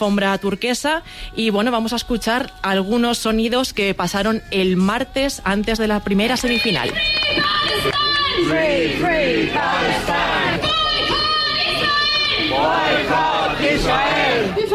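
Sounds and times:
speech: 0:00.0 - 0:10.6
pro-Palestinian protest crowd chanting: 0:06.1 - 0:14.7.

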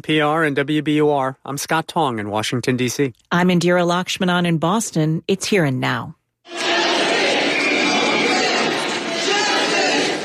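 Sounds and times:
speech: 0:00.0 - 0:06.6
large crowd chanting at a protest: 0:06.5 - 0:10.2.

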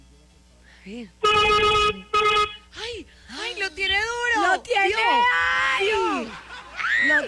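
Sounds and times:
speech: 0:00.8 - 0:02.3, 0:02.9 - 0:06.4, 0:07.0 - 0:07.2
vehicle horn honking: 0:01.2 - 0:02.7
laughter: 0:05.8 - 0:07.2.

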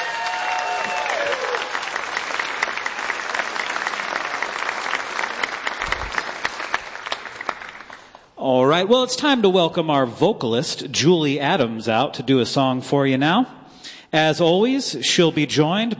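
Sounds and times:
audience applause after a live music performance: 0:00.0 - 0:08.2
speech: 0:08.4 - 0:15.9.

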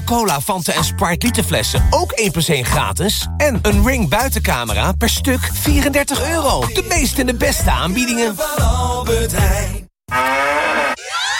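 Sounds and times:
speech: 0:00.1 - 0:10.6
cow mooing from a Müller milk bottle: 0:10.1 - 0:11.0.

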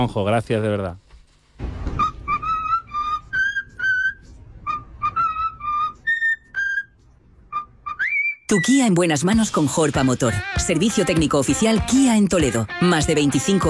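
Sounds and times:
speech: 0:00.0 - 0:01.0, 0:08.5 - 0:13.6
cockatoo whistling a birthday tune: 0:01.8 - 0:08.8.

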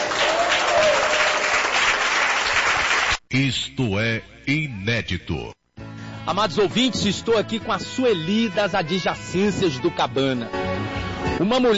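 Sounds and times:
audience applause: 0:00.0 - 0:03.2
speech: 0:03.3 - 0:05.6, 0:06.3 - 0:10.6, 0:11.4 - 0:11.7.

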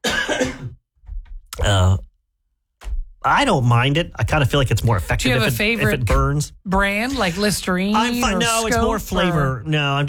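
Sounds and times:
person coughing: 0:00.0 - 0:00.8
speech: 0:01.6 - 0:02.0, 0:03.3 - 0:10.0.

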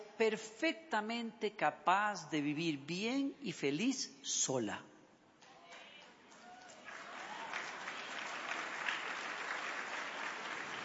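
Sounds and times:
speech: 0:00.2 - 0:04.9
timid applause from women: 0:06.2 - 0:10.8.

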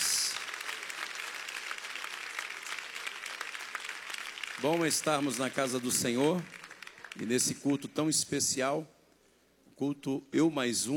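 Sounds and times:
audience clapping: 0:00.0 - 0:08.1
speech: 0:04.6 - 0:06.6, 0:07.2 - 0:09.0, 0:09.8 - 0:10.9.

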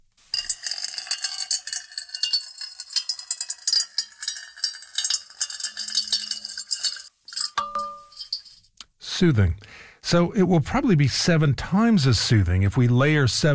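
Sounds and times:
water pouring into a metal bowl: 0:00.3 - 0:08.6
speech: 0:09.2 - 0:13.5.

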